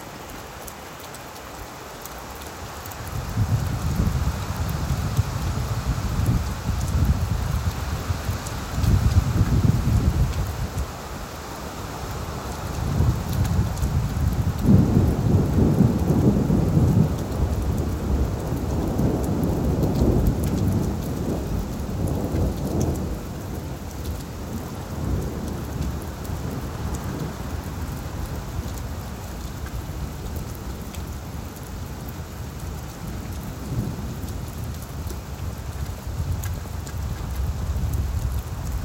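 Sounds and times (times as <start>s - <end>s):
rain: 0.0s - 38.8s
thunder: 14.6s - 23.2s.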